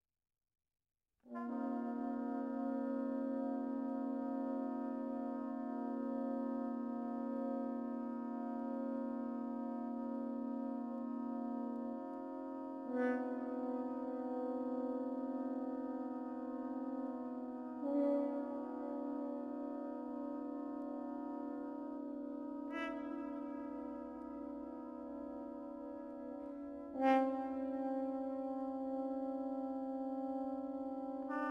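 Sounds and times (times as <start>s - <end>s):
museum music: 1.4s - 31.5s.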